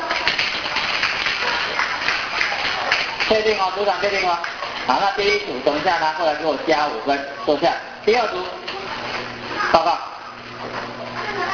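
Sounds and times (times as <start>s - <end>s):
class clapping for a group: 0.0s - 5.0s
speech: 3.3s - 8.7s, 9.7s - 10.8s.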